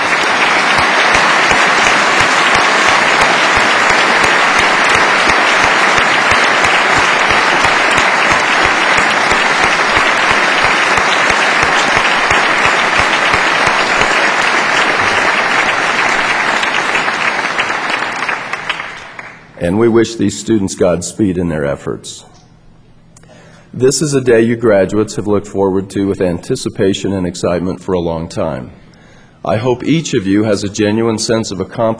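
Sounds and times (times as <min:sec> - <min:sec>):
audience applause for graduates: 0:00.0 - 0:19.5
speech: 0:19.7 - 0:22.4, 0:23.7 - 0:28.8, 0:29.4 - 0:31.9.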